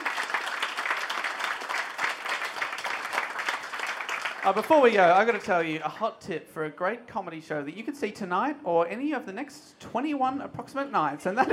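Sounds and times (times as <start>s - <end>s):
audience applause: 0.0s - 5.5s
speech: 4.4s - 11.5s.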